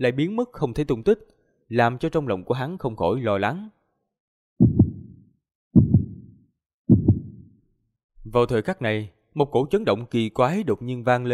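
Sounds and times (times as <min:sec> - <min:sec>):
speech: 0:00.0 - 0:03.8, 0:08.2 - 0:11.3
racing heartbeat sound effect: 0:04.6 - 0:05.2, 0:05.8 - 0:07.6.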